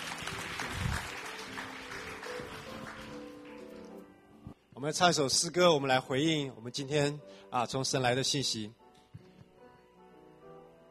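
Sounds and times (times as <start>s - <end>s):
audience clapping: 0.0s - 4.0s
speech: 4.8s - 8.8s.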